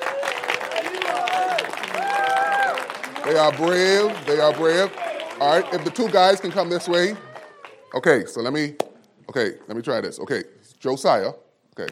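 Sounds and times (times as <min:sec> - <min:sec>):
audience applause: 0:00.0 - 0:08.2
speech: 0:03.3 - 0:07.3, 0:07.9 - 0:11.9.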